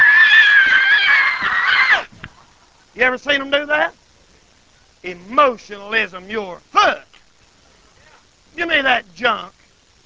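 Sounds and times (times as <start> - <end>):
man imitating a person screaming and hollering: 0.0 - 2.1
speech: 3.0 - 4.0, 5.0 - 7.1, 8.6 - 9.6.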